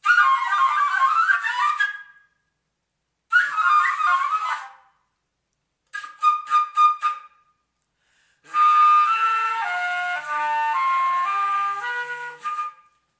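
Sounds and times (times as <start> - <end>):
melodic flute samples: 0.0 - 2.4, 3.3 - 5.0, 5.9 - 7.6, 8.4 - 13.1.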